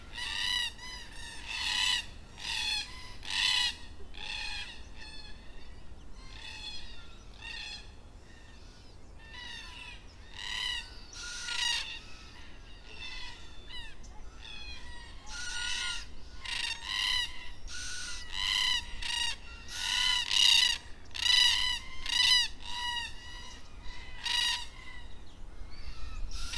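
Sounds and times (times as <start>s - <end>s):
black cockatoos calling at dusk in Perth: 0.1s - 25.2s, 25.8s - 26.5s.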